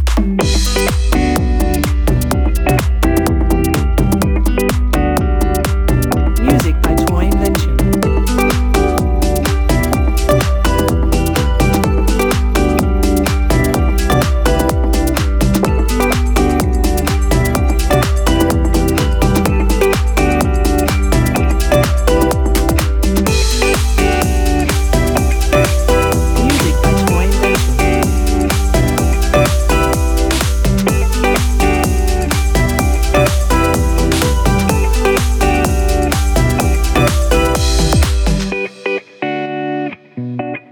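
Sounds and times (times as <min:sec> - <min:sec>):
summer radio pop music: 0:00.1 - 0:40.6.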